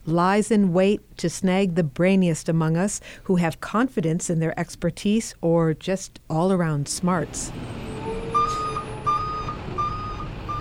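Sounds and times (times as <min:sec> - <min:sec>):
speech: 0:00.1 - 0:07.9
large truck engine rumbling while maneuvering: 0:07.2 - 0:10.5
truck backup alarm beeping: 0:07.8 - 0:10.5.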